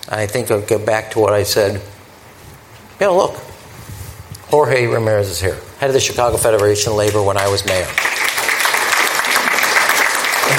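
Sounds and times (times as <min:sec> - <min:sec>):
speech: 0:00.1 - 0:02.0, 0:03.0 - 0:03.5, 0:04.5 - 0:08.1
audience applause: 0:07.7 - 0:10.5.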